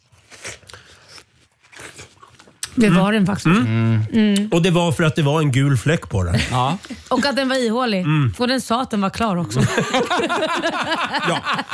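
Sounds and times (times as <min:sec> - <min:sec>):
teeth biting into a very ripe hollow fruit: 0:00.0 - 0:02.8
speech: 0:02.8 - 0:11.7
laughter: 0:09.5 - 0:11.7.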